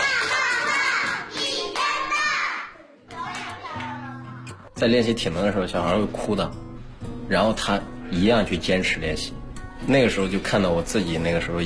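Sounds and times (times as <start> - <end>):
applause clapping: 0.0 - 2.3, 3.2 - 4.0
speech: 4.8 - 6.7, 7.3 - 11.6.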